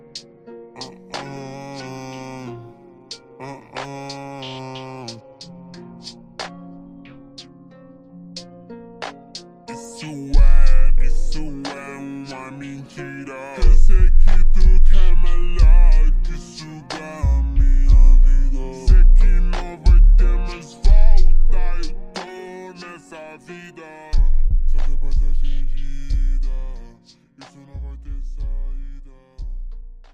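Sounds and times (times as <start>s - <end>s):
deep bass: 10.4s - 11.6s, 13.6s - 16.4s, 17.2s - 22.0s, 24.2s - 26.8s, 27.8s - 30.0s.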